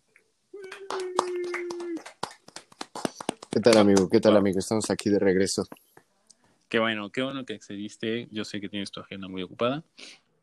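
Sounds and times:
applause: 0.6s - 5.1s
speech: 3.6s - 5.8s, 6.7s - 10.2s.

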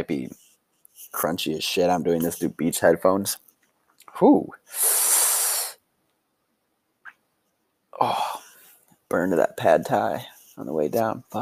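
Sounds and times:
speech: 0.0s - 0.4s, 1.0s - 3.4s, 4.2s - 5.0s, 9.1s - 11.4s
sipping whiskey and exhaling: 4.7s - 5.8s.

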